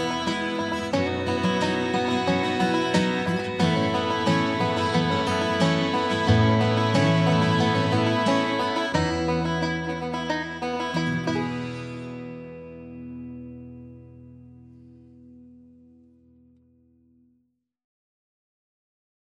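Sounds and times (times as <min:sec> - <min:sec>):
country banjo: 0:00.0 - 0:15.2.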